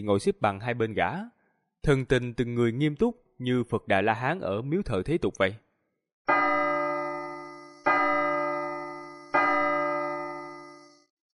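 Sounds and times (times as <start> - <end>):
speech: 0.0 - 5.6
bell tolling across a mountain range: 6.3 - 11.0.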